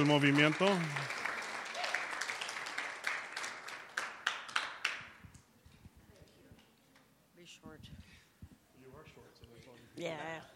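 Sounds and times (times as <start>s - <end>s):
speech: 0.0s - 1.1s
audience applause: 0.0s - 5.2s.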